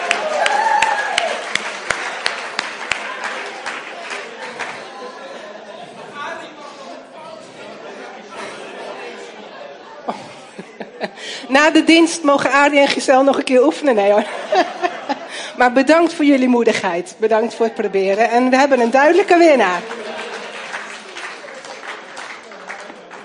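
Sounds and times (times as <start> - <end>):
applause: 0.0 - 5.2, 19.5 - 23.2
laughter: 2.2 - 11.8, 13.8 - 15.7, 19.4 - 23.2
speech: 11.5 - 14.8, 15.6 - 20.0.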